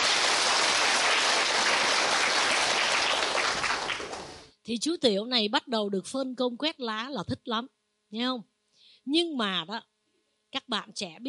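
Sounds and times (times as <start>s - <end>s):
crowd applause: 0.0s - 4.4s
speech: 4.7s - 9.9s, 10.5s - 11.2s.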